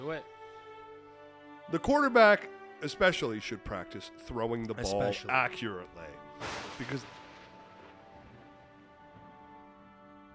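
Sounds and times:
speech: 0.1 - 0.4, 1.7 - 7.2
rain falling outside: 6.4 - 9.2.

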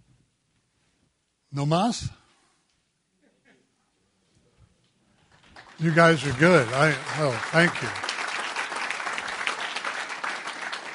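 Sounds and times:
speech: 1.5 - 2.2, 5.8 - 8.1
audience applause: 5.3 - 10.9.

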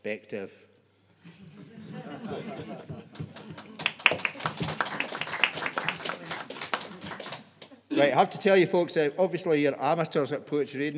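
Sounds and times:
speech: 0.0 - 0.6, 2.0 - 3.5, 8.0 - 10.9
laughter: 1.2 - 9.0
audience clapping after a poetry reading: 1.7 - 7.9.

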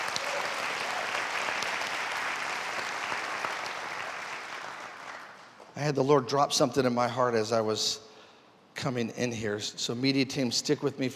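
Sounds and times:
audience clapping hands in praise: 0.0 - 5.8
speech: 5.8 - 8.1, 8.8 - 11.1.

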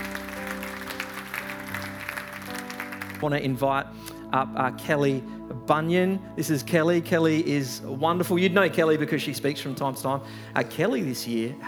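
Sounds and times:
audience applause: 0.0 - 3.2
speech: 3.2 - 11.6.

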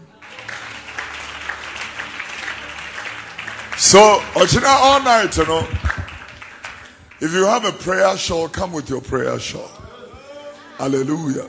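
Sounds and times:
audience clapping: 0.0 - 8.2
speech: 3.8 - 5.9, 7.2 - 9.8, 10.8 - 11.4.

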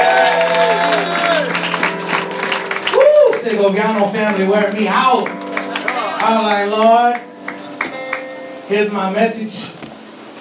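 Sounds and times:
audience clapping and cheering: 0.0 - 8.3
speech: 3.7 - 5.4, 6.2 - 7.3, 8.7 - 9.8.

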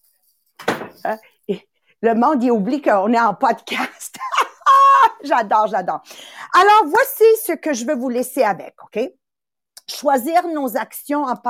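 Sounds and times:
door being swung shut: 0.6 - 1.0
speech: 1.0 - 4.2, 5.2 - 9.2, 9.9 - 11.4.

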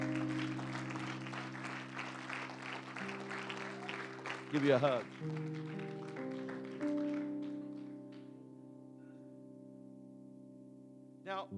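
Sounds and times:
sustained organ-like tones: 0.0 - 8.2
audience applause: 0.0 - 8.3
speech: 4.5 - 5.9.

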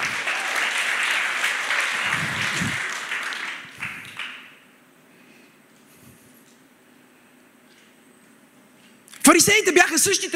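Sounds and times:
church congregation applauding: 0.0 - 4.7
speech: 9.3 - 10.3.

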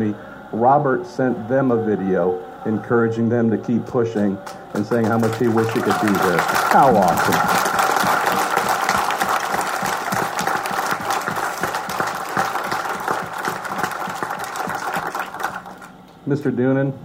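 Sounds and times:
speech: 0.0 - 7.7, 16.3 - 17.0
audience applause: 4.2 - 16.0.

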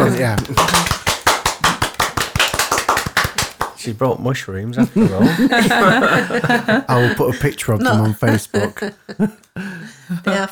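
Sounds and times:
laughter: 0.0 - 1.0, 4.8 - 10.4
round of applause: 0.0 - 3.8
speech: 0.2 - 0.9, 3.8 - 10.4.

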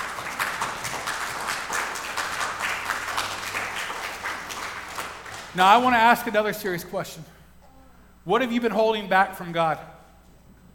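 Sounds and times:
audience applause: 0.0 - 5.9
speech: 5.6 - 7.4, 8.2 - 10.0.

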